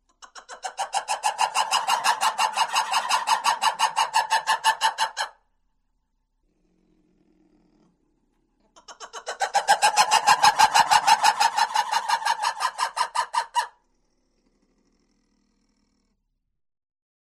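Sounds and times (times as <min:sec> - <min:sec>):
lemur barks and howls: 0:00.5 - 0:05.4, 0:09.0 - 0:13.7.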